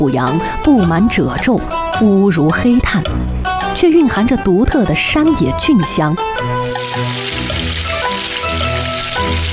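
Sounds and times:
speech: 0.0s - 7.4s
soft tonal music: 0.0s - 9.5s
green peppers sizzling in stir-fry pan: 6.6s - 9.5s.

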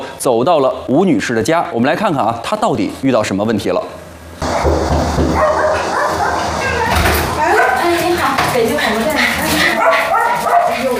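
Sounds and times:
speech: 0.2s - 4.0s
pack of rescued stray dogs barking at the door: 4.4s - 10.9s
rescued stray dogs yipping and whimpering: 5.3s - 8.1s, 8.9s - 10.9s.

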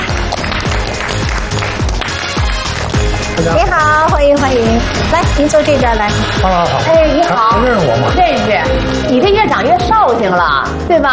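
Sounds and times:
studio audience applause: 0.0s - 4.2s
rhythmic low thumping beat: 0.0s - 10.7s
speech: 3.4s - 11.1s.

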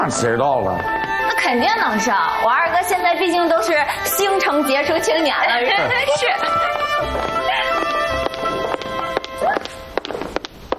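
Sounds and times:
speech: 0.0s - 7.4s
donkey hooves clip-clopping: 6.0s - 10.7s.

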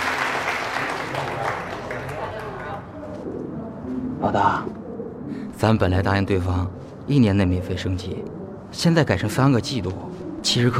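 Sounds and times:
audience applause welcoming a guest: 0.0s - 2.9s
speech: 4.2s - 4.8s, 5.6s - 10.7s.

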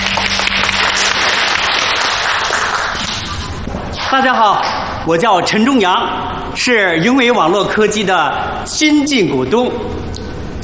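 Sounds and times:
audience applause: 0.0s - 3.4s
speech: 4.1s - 10.6s.

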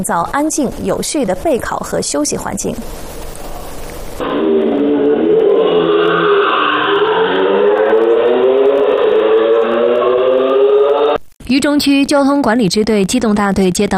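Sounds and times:
speech: 0.0s - 3.2s, 11.5s - 13.9s
motorcycle engine revving loudly: 4.2s - 11.2s.

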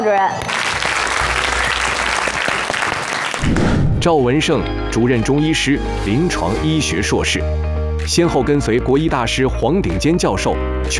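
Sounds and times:
speech: 0.0s - 0.6s, 3.4s - 10.9s
audience applause: 0.4s - 4.0s.

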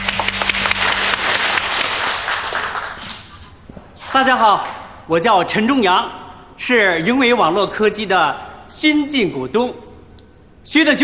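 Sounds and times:
audience applause: 0.0s - 3.5s
speech: 4.2s - 9.8s, 10.6s - 11.0s.

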